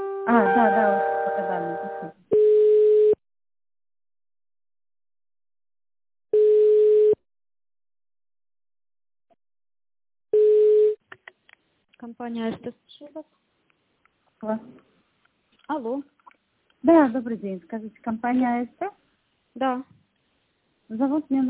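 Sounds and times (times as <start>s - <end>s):
speech: 0.3s - 2.2s, 12.2s - 13.4s, 14.4s - 14.8s, 15.7s - 16.1s, 16.8s - 19.0s, 19.6s - 20.0s, 20.9s - 21.4s
phone line ringback tone during a call transfer: 1.9s - 3.2s, 6.4s - 7.2s, 10.4s - 11.0s.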